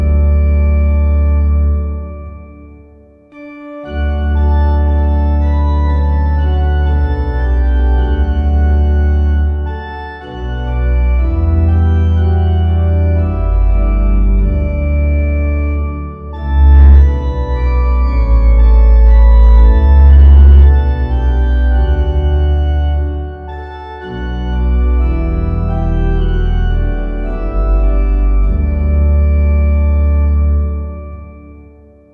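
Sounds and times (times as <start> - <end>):
organ playing a hymn: 0.0 - 32.1.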